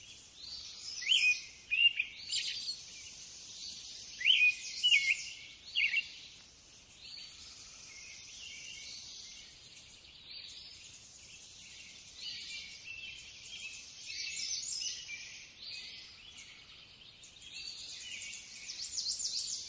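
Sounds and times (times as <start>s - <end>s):
birds chirping in nature: 0.0s - 19.6s.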